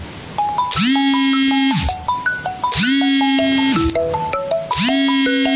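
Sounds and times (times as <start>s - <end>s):
Xiaomi phone ringtone: 0.4s - 5.5s.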